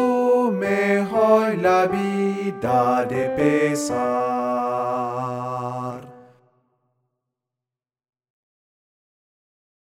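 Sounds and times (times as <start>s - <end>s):
alto voice singing: 0.0s - 6.4s.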